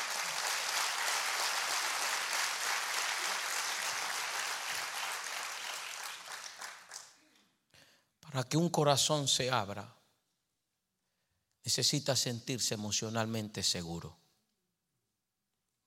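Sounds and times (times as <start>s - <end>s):
audience applause: 0.0s - 7.2s
speech: 8.3s - 10.0s, 11.6s - 14.2s.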